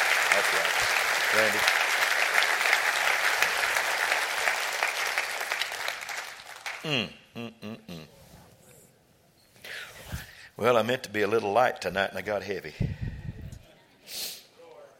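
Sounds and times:
audience clapping hands: 0.0s - 6.9s
speech: 0.4s - 1.8s, 6.8s - 7.8s, 10.6s - 13.0s.

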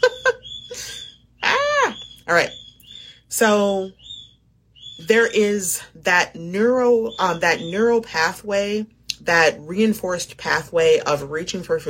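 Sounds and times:
pet bird chirping, whistling and squawking: 0.2s - 5.5s
speech: 2.3s - 2.6s, 3.3s - 4.1s, 5.0s - 11.8s.

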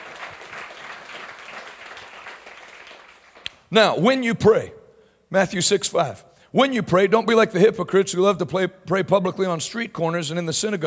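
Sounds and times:
audience hand clapping: 0.0s - 3.7s
speech: 3.7s - 10.8s.

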